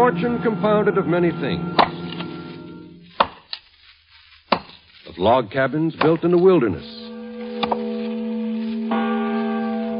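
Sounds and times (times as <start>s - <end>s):
great bell ringing: 0.0s - 3.0s, 6.8s - 9.9s
speech: 0.1s - 1.9s, 5.2s - 7.0s.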